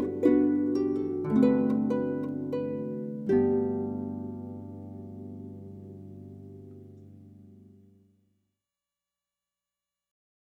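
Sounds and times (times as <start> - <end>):
harp playing a folk song: 0.0 - 8.0.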